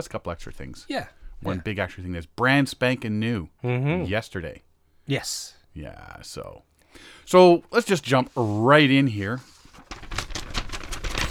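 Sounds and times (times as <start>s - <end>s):
speech: 0.0s - 9.5s
papers rattling: 7.8s - 11.2s.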